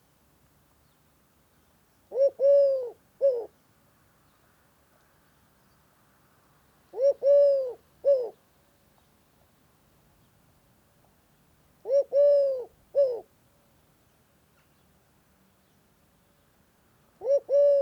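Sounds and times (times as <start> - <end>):
Eurasian collared dove calling: 2.1 - 3.5, 6.9 - 8.4, 11.8 - 13.3, 17.2 - 17.8.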